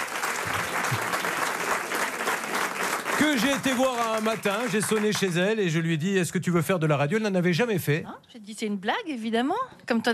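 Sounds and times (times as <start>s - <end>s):
radio show studio audience applauding a guest lawyer: 0.0s - 5.8s
speech: 3.3s - 10.1s.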